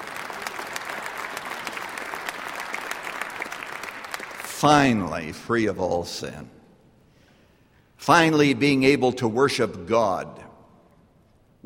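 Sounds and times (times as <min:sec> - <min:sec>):
audience applause: 0:00.0 - 0:04.6
speech: 0:04.6 - 0:06.6, 0:08.0 - 0:10.4.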